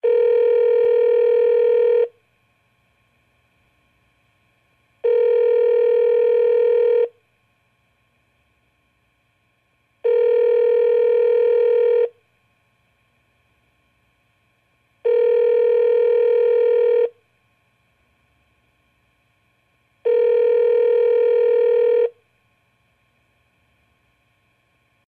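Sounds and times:
phone ringback tone: 0.0s - 2.2s, 5.0s - 7.2s, 10.0s - 12.2s, 15.0s - 17.2s, 20.0s - 22.2s.

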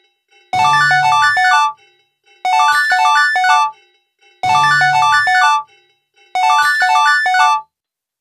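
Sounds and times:
Sony Ericsson W995 mobile phone ringtone: 0.5s - 1.8s, 2.4s - 3.8s, 4.4s - 5.7s, 6.3s - 7.7s.

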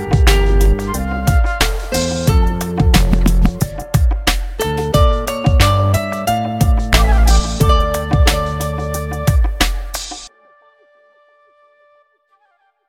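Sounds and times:
sarabande: 0.0s - 10.3s.

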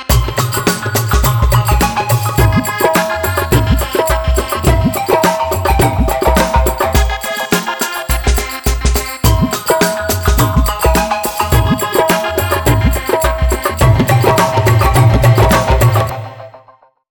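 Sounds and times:
trance music: 0.1s - 16.7s.

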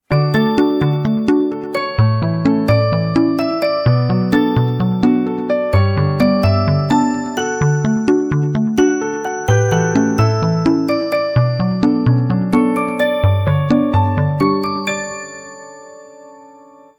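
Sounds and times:
ringtone: 0.0s - 16.9s.

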